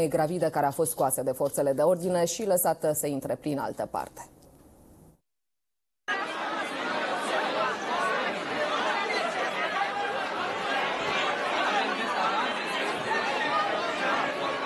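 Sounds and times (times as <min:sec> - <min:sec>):
speech: 0:00.0 - 0:04.4
dense crowd chatter at night: 0:06.1 - 0:14.6
people laughing: 0:06.1 - 0:14.6.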